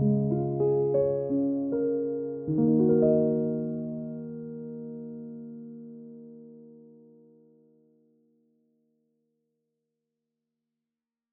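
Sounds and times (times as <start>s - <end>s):
clean piano: 0.0s - 8.6s.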